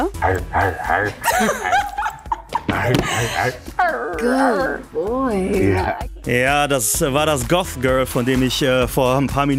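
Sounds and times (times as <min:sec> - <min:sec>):
man barking like a dog: 0:00.0 - 0:01.2
speech: 0:00.0 - 0:02.0, 0:02.7 - 0:09.5
laughter: 0:01.0 - 0:03.6.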